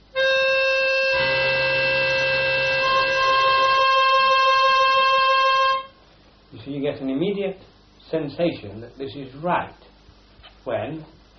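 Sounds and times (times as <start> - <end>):
two notes forming a seventh interval: 0.0 - 5.9
speech: 7.1 - 9.9, 10.6 - 11.3.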